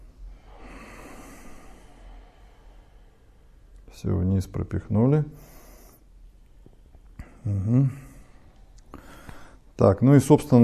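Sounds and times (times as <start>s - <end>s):
slow breathing in and out during a breathing exercise: 0.0s - 3.7s, 5.3s - 6.3s, 7.2s - 9.8s
speech: 3.9s - 5.5s, 7.4s - 8.1s, 9.8s - 10.6s.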